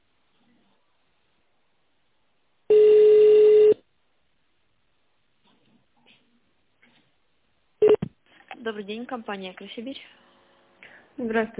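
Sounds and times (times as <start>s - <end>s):
telephone ringback tone while dialing extension: 2.7s - 3.8s
speech: 8.7s - 10.2s, 11.2s - 11.5s.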